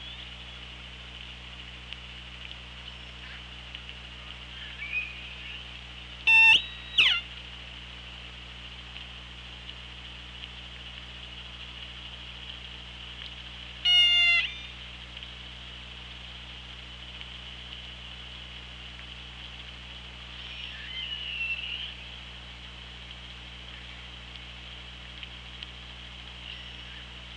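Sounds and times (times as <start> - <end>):
hydrophone hiss and hum: 0.0 - 27.3
orca calls underwater: 4.3 - 7.3, 13.8 - 14.8, 20.3 - 22.2.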